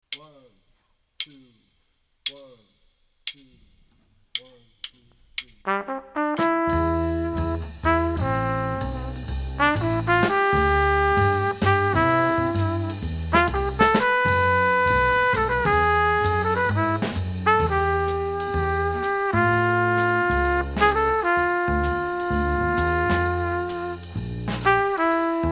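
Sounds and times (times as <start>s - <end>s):
backing track without piano: 5.7s - 25.5s.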